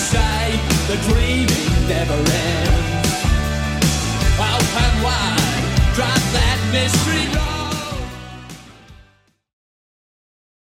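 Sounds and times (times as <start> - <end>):
80s drum machine beat: 0.0 - 8.4.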